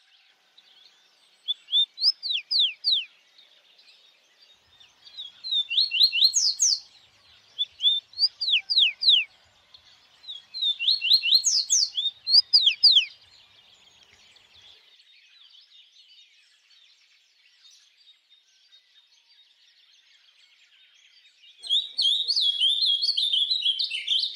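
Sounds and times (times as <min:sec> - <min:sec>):
bird whistling song: 0:01.3 - 0:03.2, 0:04.8 - 0:09.3, 0:10.2 - 0:13.4, 0:21.6 - 0:24.3.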